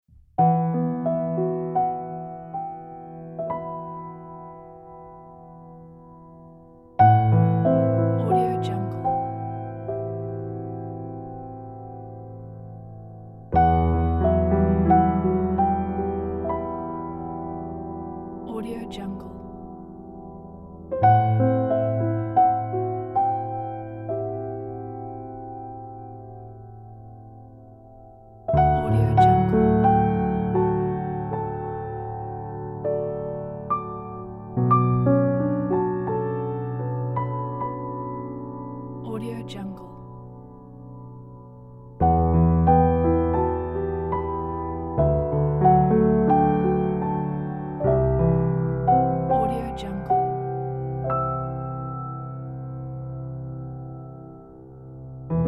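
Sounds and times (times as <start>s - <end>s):
reflective piano score: 0.0s - 55.4s.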